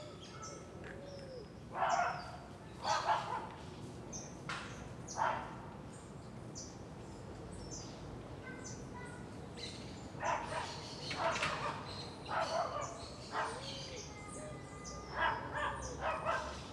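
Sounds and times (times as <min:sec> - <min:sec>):
small dogs barking in a residential block: 0:01.7 - 0:03.5, 0:05.1 - 0:05.5, 0:10.2 - 0:13.7, 0:15.1 - 0:16.6.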